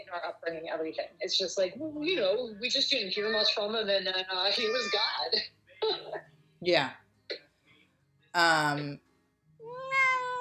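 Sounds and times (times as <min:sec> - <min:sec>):
speech: 0:00.1 - 0:06.0, 0:06.6 - 0:07.0, 0:08.4 - 0:09.0
cat meowing: 0:03.2 - 0:03.6, 0:04.4 - 0:05.3, 0:09.6 - 0:10.3.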